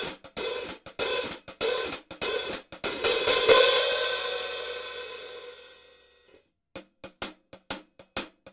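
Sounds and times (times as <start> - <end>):
Paiste Traditional Medium 13 hi-hat cymbal: 0.0 - 5.8.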